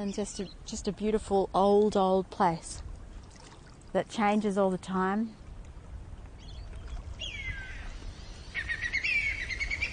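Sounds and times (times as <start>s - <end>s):
speech: 0.0s - 2.9s, 3.9s - 5.4s
whistling kite calling: 7.2s - 9.9s.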